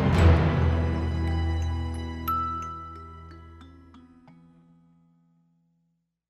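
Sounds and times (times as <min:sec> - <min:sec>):
music box: 0:00.2 - 0:04.7.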